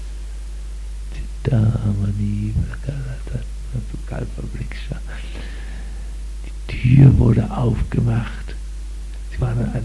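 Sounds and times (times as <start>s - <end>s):
constant low hum: 0.0s - 9.8s
speech: 1.4s - 5.6s, 6.7s - 8.5s, 9.4s - 9.8s
low voices chanting Vedic mantras: 6.7s - 7.6s.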